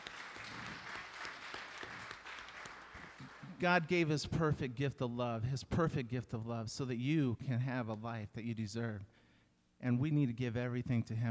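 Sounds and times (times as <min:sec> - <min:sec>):
audience hand clapping: 0:00.0 - 0:03.9
speech: 0:03.6 - 0:09.2, 0:09.8 - 0:11.3.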